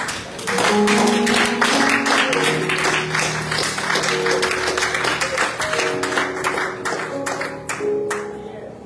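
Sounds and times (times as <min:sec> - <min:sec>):
audience clapping in praise: 0:00.0 - 0:08.4.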